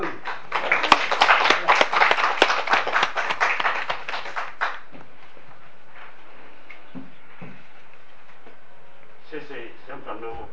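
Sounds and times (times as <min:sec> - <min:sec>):
audience applause: 0:00.0 - 0:04.9.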